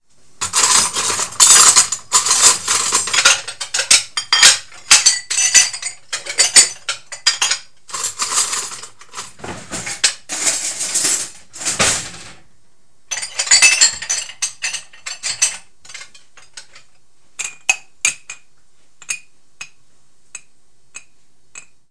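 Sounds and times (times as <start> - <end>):
dishes clinking: 0.4 - 12.3, 13.1 - 18.4.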